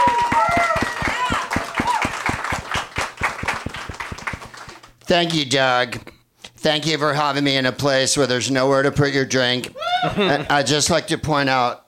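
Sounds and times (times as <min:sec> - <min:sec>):
audience applause: 0:00.0 - 0:04.9
speech: 0:05.1 - 0:11.8.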